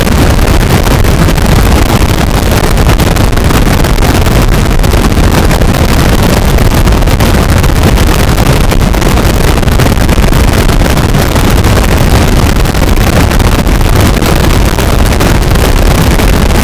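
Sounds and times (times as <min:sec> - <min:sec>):
harsh noise becoming white noise: 0:00.0 - 0:16.6.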